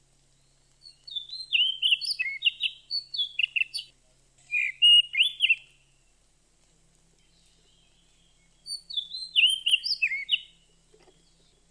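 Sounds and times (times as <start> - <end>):
Oriental magpie-robin singing rich varied whistles: 0.4 - 3.9, 4.5 - 5.8, 7.4 - 10.6.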